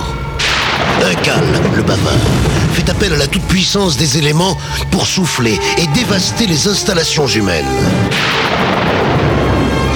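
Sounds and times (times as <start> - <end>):
thunder clap: 0.3 - 4.6, 8.0 - 9.9
speech: 1.2 - 9.0.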